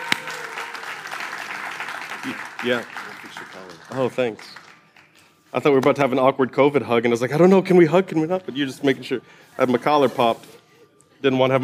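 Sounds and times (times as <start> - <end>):
audience clapping: 0.0 - 5.4
speech: 2.2 - 4.6, 5.5 - 10.6, 11.2 - 11.6.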